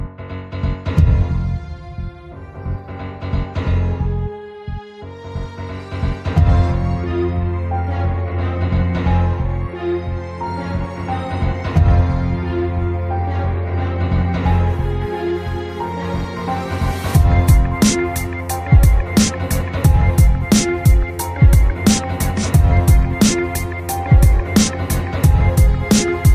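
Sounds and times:
hip hop music: 0.0s - 26.3s.

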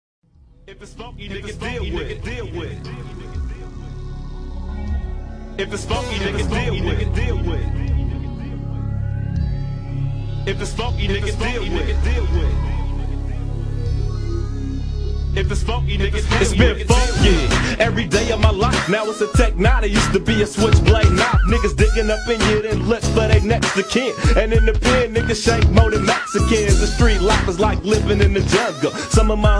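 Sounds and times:
funk music: 0.6s - 29.5s.

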